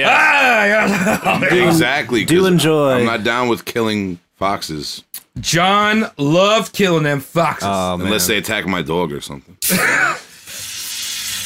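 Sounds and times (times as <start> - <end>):
laughter: 0.0 - 3.2
speech: 0.0 - 10.3
shaken drink can opened and spraying: 10.4 - 11.4.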